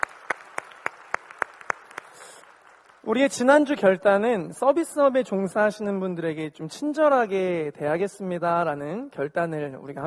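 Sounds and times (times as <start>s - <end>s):
audience clapping in unison: 0.0s - 3.7s
speech: 3.0s - 10.0s.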